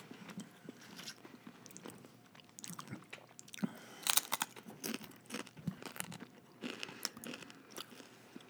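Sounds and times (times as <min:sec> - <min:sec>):
steady chewing: 0:02.6 - 0:08.4
crunching bites of a crispy taco shell: 0:04.0 - 0:08.4.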